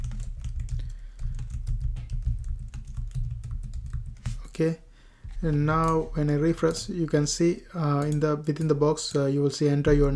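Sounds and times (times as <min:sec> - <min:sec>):
typing on a computer keyboard while entering text into a web page: 0:00.0 - 0:04.5, 0:07.9 - 0:09.2
speech: 0:04.6 - 0:10.1.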